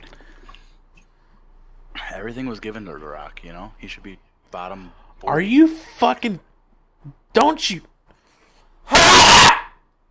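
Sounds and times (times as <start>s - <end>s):
speech: 2.2s - 7.9s
angry scream: 8.9s - 9.9s.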